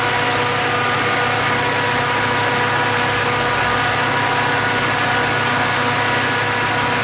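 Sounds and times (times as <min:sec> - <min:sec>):
train motor: 0:00.0 - 0:07.0.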